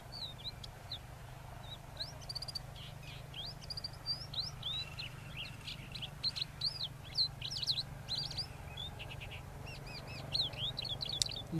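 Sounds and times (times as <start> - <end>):
crested lark calls: 0.0 - 11.5.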